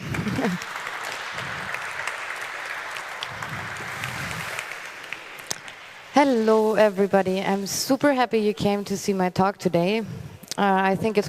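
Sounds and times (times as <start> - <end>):
audience applause: 0.0 - 7.4
speech: 0.4 - 0.8, 6.2 - 11.2.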